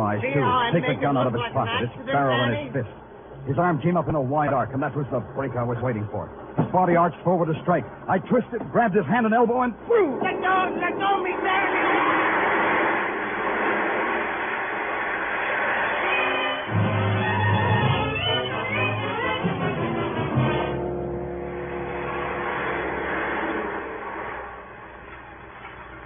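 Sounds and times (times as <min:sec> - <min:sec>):
speech: 0:00.2 - 0:12.1
roller coaster ride sound effect in a radio drama: 0:06.4 - 0:26.0.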